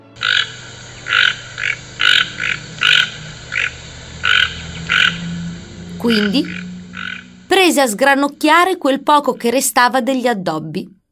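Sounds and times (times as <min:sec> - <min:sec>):
toucan croaking calls: 0:00.2 - 0:07.6
low rumble: 0:00.2 - 0:10.2
speech: 0:06.0 - 0:06.6, 0:07.6 - 0:11.0.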